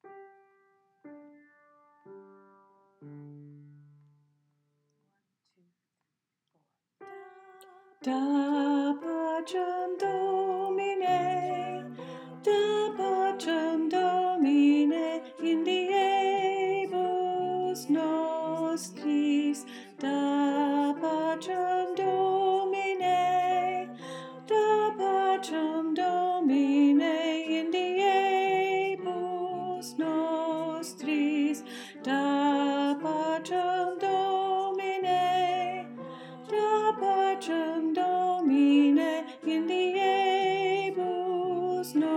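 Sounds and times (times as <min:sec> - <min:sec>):
alto choir singing: 0:08.1 - 0:42.1.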